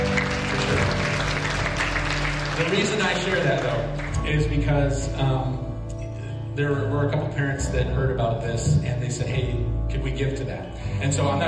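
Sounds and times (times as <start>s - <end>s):
audience applause: 0.0s - 4.3s
speech: 2.6s - 5.7s, 6.6s - 11.4s.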